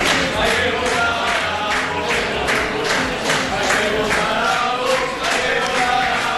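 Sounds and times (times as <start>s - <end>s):
applause: 0.0s - 6.3s
young crowd chanting slogan: 0.0s - 6.3s.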